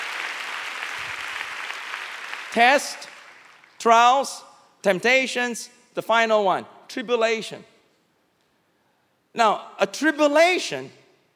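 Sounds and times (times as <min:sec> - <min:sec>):
crowd clapping: 0:00.0 - 0:03.8
speech: 0:02.5 - 0:03.2, 0:03.8 - 0:07.7, 0:09.3 - 0:11.0.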